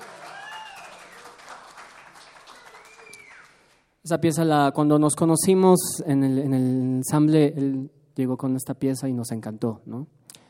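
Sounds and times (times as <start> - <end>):
audience applause: 0.0 - 3.8
speech: 4.1 - 10.2.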